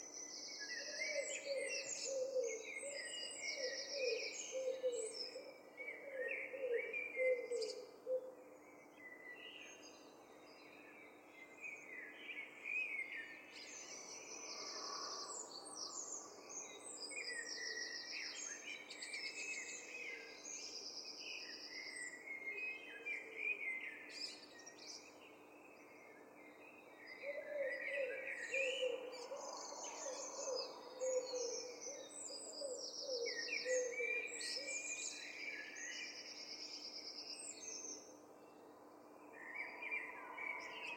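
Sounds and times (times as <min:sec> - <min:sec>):
London dawn chorus birds chirping and trilling: 0:00.0 - 0:40.9.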